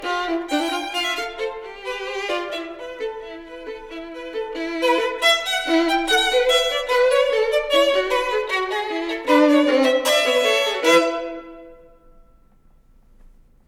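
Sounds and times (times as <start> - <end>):
duo for two violins: 0.0 - 12.0.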